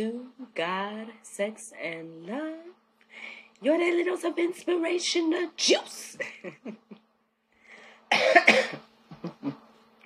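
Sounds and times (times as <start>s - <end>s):
speech: 0.0s - 6.9s, 8.1s - 8.8s
coughing and throat clearing: 8.1s - 9.6s.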